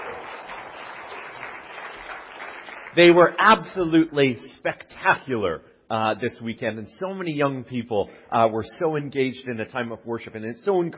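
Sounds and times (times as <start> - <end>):
audience applause: 0.0 - 3.3
speech: 2.9 - 10.9.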